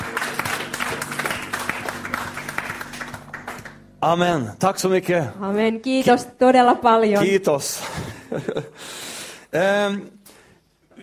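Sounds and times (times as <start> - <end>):
audience applause: 0.0 - 3.9
low sustained musical hum: 0.0 - 7.0
speech: 4.0 - 10.2.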